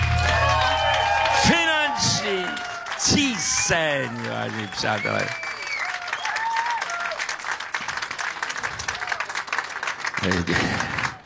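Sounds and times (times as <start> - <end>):
live audience applause: 0.0 - 11.2
speech: 3.1 - 5.4, 10.3 - 11.0
whistles: 3.4 - 6.8.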